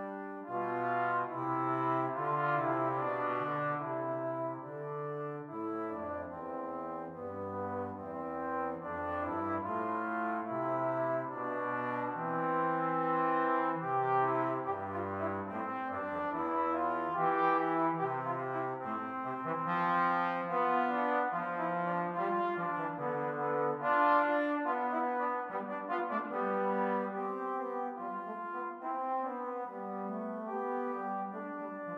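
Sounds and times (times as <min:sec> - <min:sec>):
trombone duet: 0:00.0 - 0:31.9.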